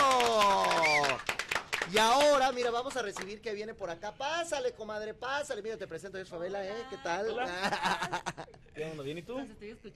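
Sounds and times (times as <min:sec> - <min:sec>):
audience applause: 0:00.0 - 0:03.3
speech: 0:01.9 - 0:09.9
laughter: 0:07.2 - 0:08.7.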